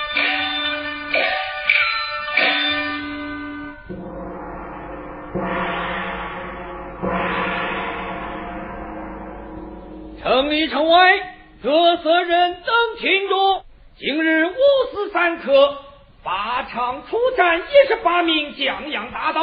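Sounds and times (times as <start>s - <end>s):
gongs being struck in succession: 0.2s - 11.7s
speech: 10.7s - 19.4s.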